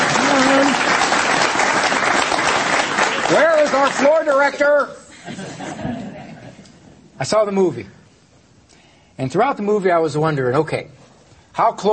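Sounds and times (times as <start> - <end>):
audience clapping: 0.0 - 5.0
speech: 3.3 - 6.0, 7.2 - 8.0, 9.2 - 11.0, 11.6 - 11.9
laughter: 5.0 - 7.0.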